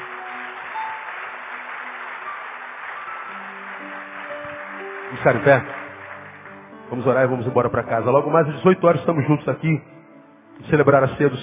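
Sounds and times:
audience applauding loudly: 0:00.0 - 0:07.8
speech: 0:05.1 - 0:05.8, 0:06.9 - 0:09.9, 0:10.6 - 0:11.4.

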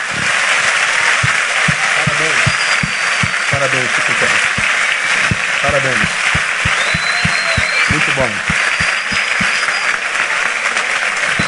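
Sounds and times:
audience applauding loudly: 0:00.0 - 0:11.4
heavier low thumps: 0:01.2 - 0:09.7
speech: 0:03.6 - 0:04.5, 0:05.6 - 0:06.4, 0:07.9 - 0:08.6.

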